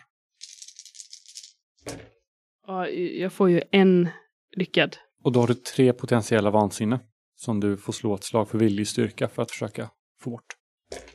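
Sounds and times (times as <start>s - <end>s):
dice being rolled: 0.4s - 2.1s
speech: 2.7s - 11.1s.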